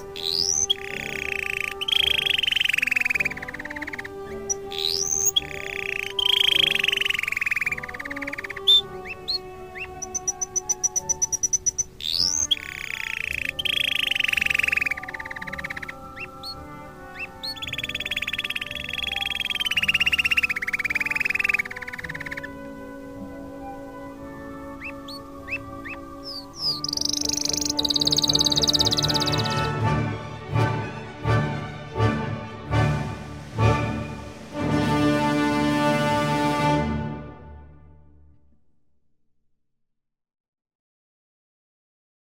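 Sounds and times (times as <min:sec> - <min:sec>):
canary rolling trills and chirps: 0:00.0 - 0:29.8
rhythmic background music with soft beats: 0:00.0 - 0:38.6.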